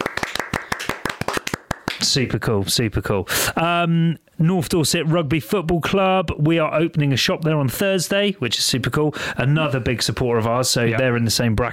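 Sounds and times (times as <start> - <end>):
small round of clapping: 0.0 - 2.2
speech: 2.0 - 11.7.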